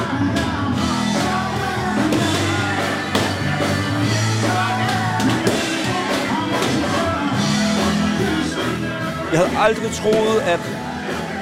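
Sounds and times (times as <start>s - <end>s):
crowd of elderly people shouting and cheering: 0.0s - 11.4s
speech: 9.4s - 10.8s.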